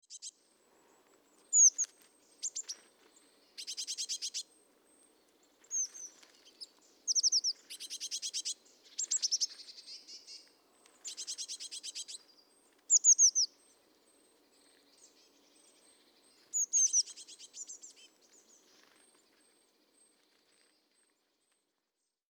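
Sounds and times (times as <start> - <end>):
Eurasian blue tit calls: 1.5 - 2.8, 3.5 - 4.5, 5.7 - 10.4, 11.0 - 12.3, 12.9 - 13.5, 14.8 - 18.8.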